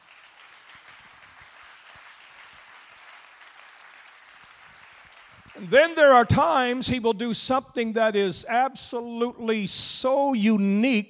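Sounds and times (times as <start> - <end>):
audience clapping: 0.0 - 6.3
speech: 5.6 - 11.0.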